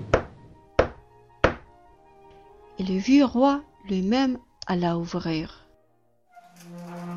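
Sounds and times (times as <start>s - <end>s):
knocking on the town gate: 0.0s - 1.7s
speech: 2.8s - 5.6s.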